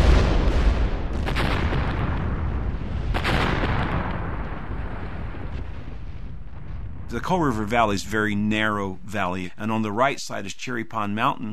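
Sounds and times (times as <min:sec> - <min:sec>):
mountaintop mining explosive blasts: 0:00.0 - 0:08.8
speech: 0:07.1 - 0:11.5.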